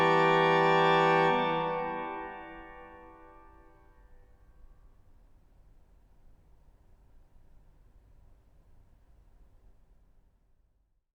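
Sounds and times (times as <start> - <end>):
piccolo ragtime: 0.0 - 3.4
organ playing: 0.0 - 3.7.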